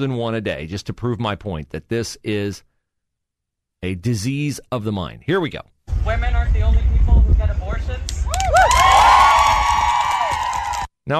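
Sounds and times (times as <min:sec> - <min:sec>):
speech: 0:00.0 - 0:02.7, 0:03.8 - 0:07.5
crowd cheering: 0:08.0 - 0:10.9
applause: 0:08.3 - 0:10.9.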